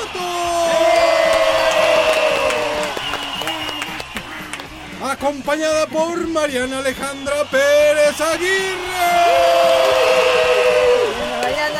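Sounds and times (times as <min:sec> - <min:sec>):
audience applause and cheering: 0:00.0 - 0:11.7
speech: 0:05.2 - 0:10.3.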